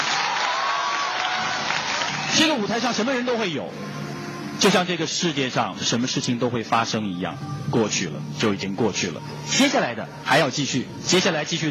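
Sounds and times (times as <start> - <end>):
audience applause: 0.0 - 2.8
speech: 2.4 - 4.0, 4.6 - 11.6.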